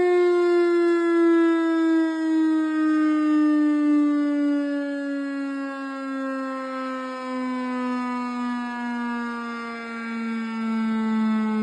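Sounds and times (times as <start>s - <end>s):
electromechanical siren: 0.0s - 11.6s.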